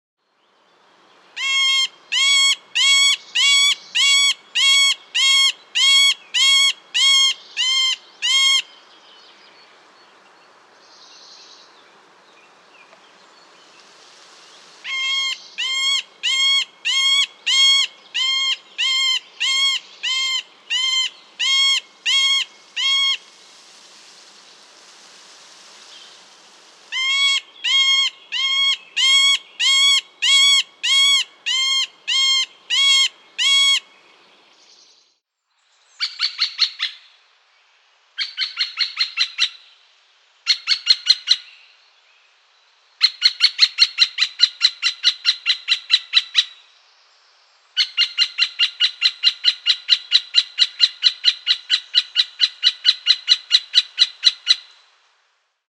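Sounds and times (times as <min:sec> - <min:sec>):
middle spotted woodpecker call: 0:01.4 - 0:08.7, 0:14.8 - 0:23.3, 0:26.9 - 0:33.9, 0:38.2 - 0:39.6, 0:40.5 - 0:41.5, 0:43.0 - 0:46.6, 0:47.8 - 0:54.7.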